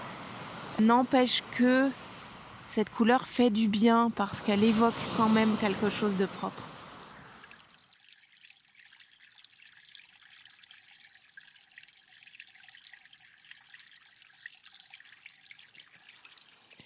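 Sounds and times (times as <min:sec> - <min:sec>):
running water from small streams in Beaujolais: 0:00.0 - 0:16.8
speech: 0:00.8 - 0:02.0, 0:02.8 - 0:06.7.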